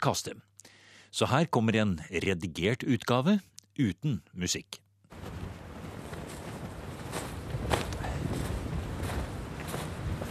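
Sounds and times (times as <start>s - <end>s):
speech: 0.0s - 0.5s, 1.1s - 4.8s
wind picking up outdoors: 5.1s - 10.2s.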